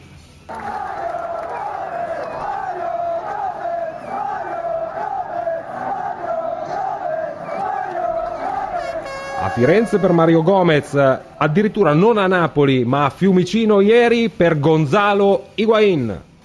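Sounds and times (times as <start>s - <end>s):
large crowd of football fans roaring and chanting in unison in Florence: 0.5s - 12.7s
speech: 9.5s - 16.3s.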